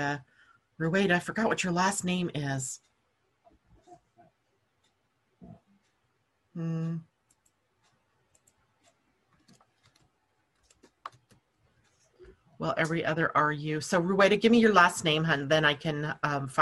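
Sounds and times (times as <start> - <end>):
speech: 0.0 - 2.9, 6.6 - 7.1, 12.6 - 16.6
computer keyboard typing: 7.2 - 11.5.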